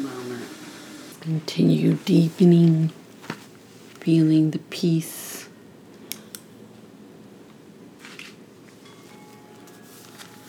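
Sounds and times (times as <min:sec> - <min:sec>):
speech: 0:01.2 - 0:03.0, 0:04.0 - 0:05.2
meditation chimes ringing: 0:08.9 - 0:10.4.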